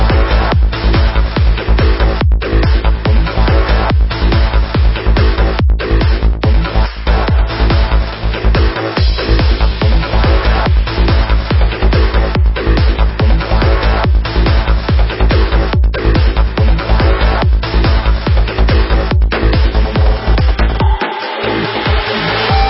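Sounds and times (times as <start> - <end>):
progressive trance music with drums: 0.0 - 22.6.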